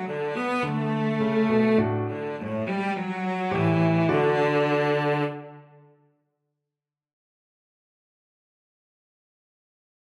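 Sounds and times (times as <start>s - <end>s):
cello melody: 0.0s - 6.0s.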